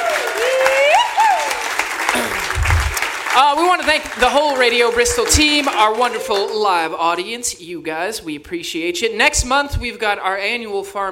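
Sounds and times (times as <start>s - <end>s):
whistle or whooping cheer: 0.0s - 1.7s
audience applause: 0.0s - 6.7s
speech: 3.4s - 11.0s.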